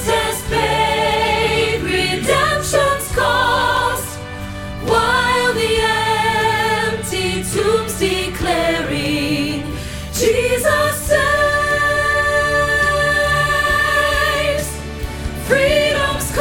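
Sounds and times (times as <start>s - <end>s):
soprano choir rehearsal part singing: 0.0s - 14.8s, 15.4s - 16.4s.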